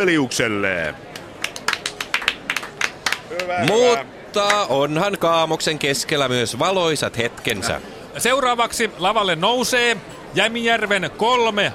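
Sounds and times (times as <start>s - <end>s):
speech: 0.0s - 1.1s, 3.4s - 11.7s
scattered applause from a small audience at a Christmas party stage show: 0.8s - 4.7s.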